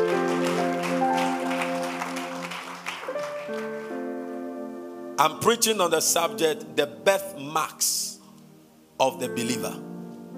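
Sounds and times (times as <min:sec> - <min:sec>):
audience clapping: 0:00.0 - 0:04.1
speech: 0:05.2 - 0:08.1, 0:09.0 - 0:09.9.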